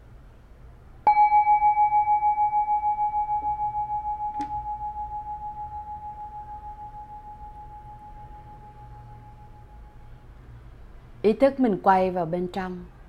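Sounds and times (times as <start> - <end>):
meditation bell ringing: 1.1 - 10.3
speech: 11.3 - 12.9.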